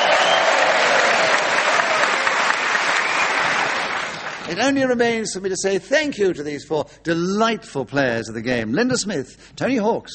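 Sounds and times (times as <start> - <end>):
audience round of applause: 0.0 - 4.5
speech: 4.5 - 10.1.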